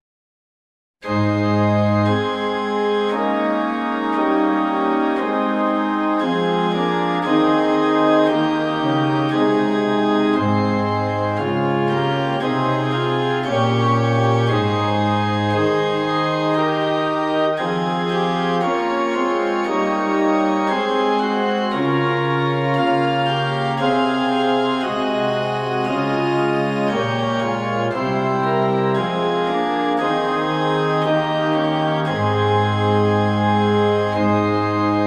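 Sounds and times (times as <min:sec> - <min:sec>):
instrumental music: 0:01.0 - 0:35.0.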